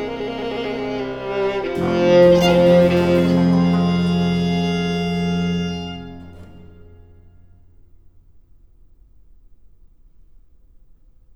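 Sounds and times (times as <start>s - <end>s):
violin sonata: 0.0s - 7.4s.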